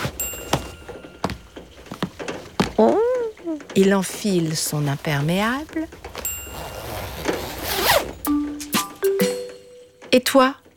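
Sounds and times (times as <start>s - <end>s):
short high rubbery squeak of rubber boots: 0.0s - 1.0s, 1.8s - 8.3s
rubber boots being pulled on with dull thunks and bumps: 0.0s - 3.1s, 4.4s - 8.2s
speech: 2.8s - 6.2s, 10.1s - 10.6s.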